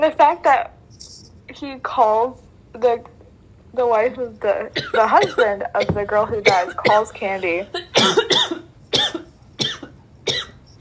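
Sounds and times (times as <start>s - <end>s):
speech: 0.0s - 8.3s
person coughing from choking on water: 4.8s - 10.6s.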